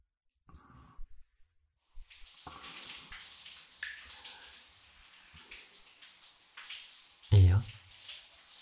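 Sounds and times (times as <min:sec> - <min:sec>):
shower water running: 0:01.8 - 0:08.6
louder splash or thump: 0:02.0 - 0:08.6.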